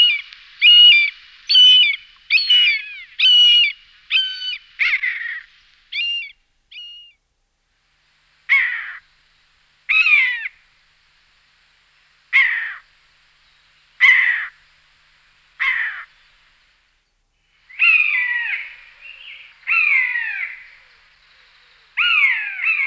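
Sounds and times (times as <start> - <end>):
common buzzard calling: 0.0 - 7.2, 9.9 - 10.6, 14.0 - 14.6, 17.7 - 20.9, 22.0 - 22.8.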